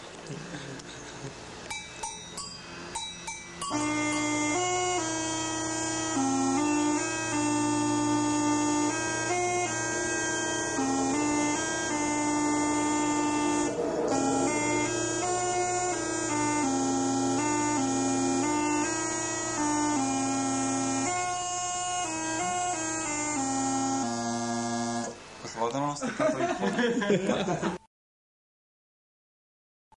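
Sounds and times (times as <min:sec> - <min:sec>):
laughter: 0:00.2 - 0:01.4, 0:26.0 - 0:27.8
launeddas playing: 0:01.6 - 0:25.2.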